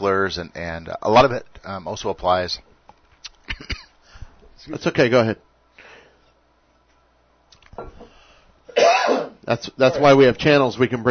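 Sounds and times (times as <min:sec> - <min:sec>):
speech: 0:00.0 - 0:02.7, 0:04.6 - 0:05.5, 0:08.8 - 0:11.0
person clearing a dry throat: 0:08.8 - 0:10.0.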